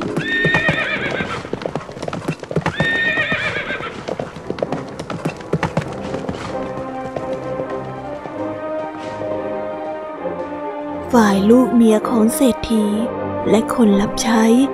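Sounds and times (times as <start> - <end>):
herd of horses neighing: 0.0 - 9.4
hooves of a herd of horses: 0.0 - 11.1
speech: 11.1 - 14.7.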